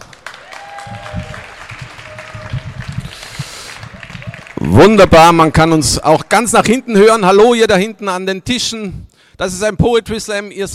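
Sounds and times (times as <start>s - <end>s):
audience applause: 0.0s - 5.1s
speech: 4.7s - 10.7s.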